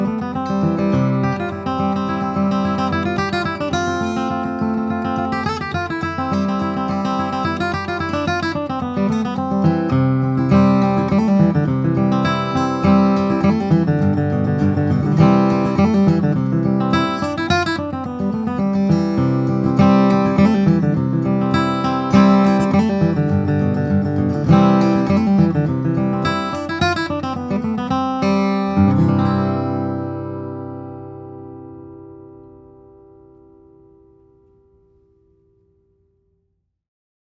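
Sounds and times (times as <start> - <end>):
1939 Martin D-18 mahogany and Adirondack spruce flattop steel string guitar: 0.0 - 35.7.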